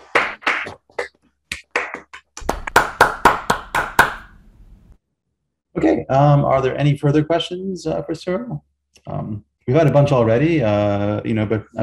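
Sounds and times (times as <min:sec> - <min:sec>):
round of applause over video call: 0:00.0 - 0:04.3
speech: 0:06.1 - 0:11.8.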